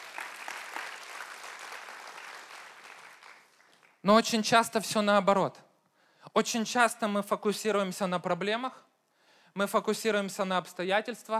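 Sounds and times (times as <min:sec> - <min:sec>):
audience applause: 0:00.0 - 0:04.0
speech: 0:04.0 - 0:05.6, 0:06.3 - 0:08.9, 0:09.5 - 0:11.3.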